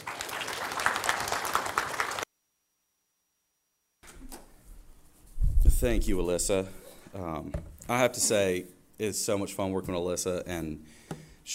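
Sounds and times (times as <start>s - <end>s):
audience applause: 0.0s - 2.2s
speech: 5.8s - 11.5s.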